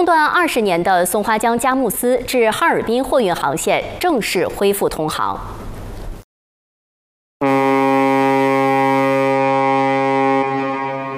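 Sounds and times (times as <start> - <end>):
speech: 0.0 - 5.7
long blast of a barge's horn: 7.4 - 11.1.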